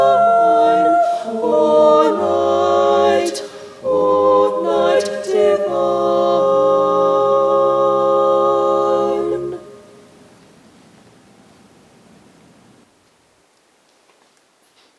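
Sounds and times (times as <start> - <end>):
SATB choir singing a carol: 0.0 - 10.0.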